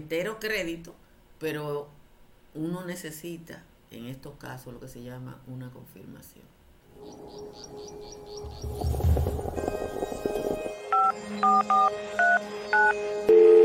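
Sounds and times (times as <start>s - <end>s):
speech: 0.0s - 2.0s, 2.6s - 10.3s, 11.2s - 13.5s
telephone number being dialed: 11.0s - 12.9s.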